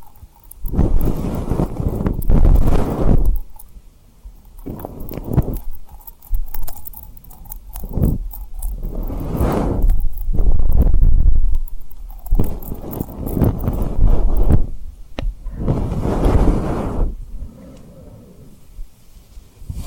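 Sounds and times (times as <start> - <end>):
tapping and rubbing on a rhinestone surface: 0.0 - 3.7, 4.4 - 14.8, 15.6 - 17.2.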